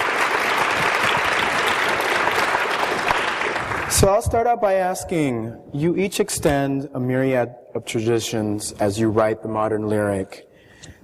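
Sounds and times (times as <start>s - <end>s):
audience applause: 0.0s - 4.1s
speech: 4.0s - 11.0s.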